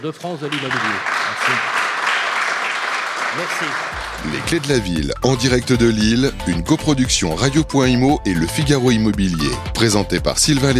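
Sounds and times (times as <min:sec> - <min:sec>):
speech: 0:00.0 - 0:01.8, 0:03.3 - 0:10.7
audience applause: 0:00.0 - 0:04.9.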